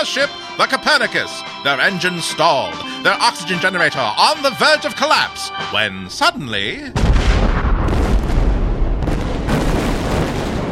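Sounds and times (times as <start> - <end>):
speech: 0.0 - 7.2
supernova explosion sound effect: 6.9 - 10.7.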